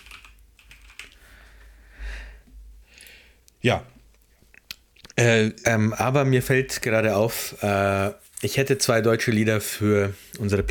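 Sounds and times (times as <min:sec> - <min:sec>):
computer keyboard typing a quick note: 0:00.0 - 0:01.2
speech: 0:03.6 - 0:03.9, 0:05.2 - 0:10.7.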